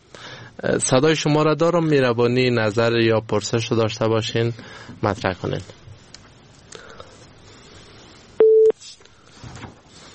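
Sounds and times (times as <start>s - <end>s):
speech: 0.6s - 5.8s
phone line beep after a caller's connection to a radio show drops: 8.4s - 8.8s.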